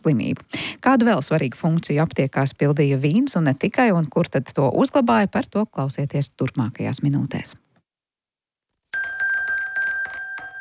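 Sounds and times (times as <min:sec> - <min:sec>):
speech: 0:00.0 - 0:07.6
small bell jingling: 0:09.0 - 0:10.6.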